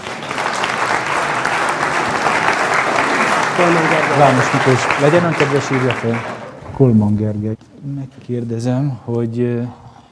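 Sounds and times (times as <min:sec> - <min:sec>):
audience applause: 0:00.0 - 0:06.7
speech: 0:03.6 - 0:09.8.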